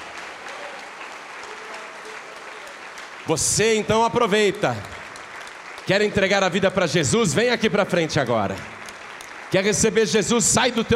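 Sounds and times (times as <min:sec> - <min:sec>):
audience applause: 0:00.0 - 0:10.9
speech: 0:03.3 - 0:05.0, 0:05.9 - 0:08.8, 0:09.5 - 0:10.9.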